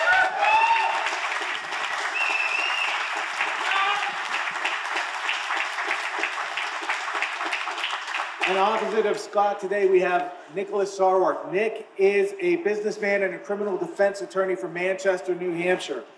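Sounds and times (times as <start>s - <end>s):
crowd applauding to welcome a guest at a debate event: 0.0s - 9.2s
speech: 8.5s - 16.1s.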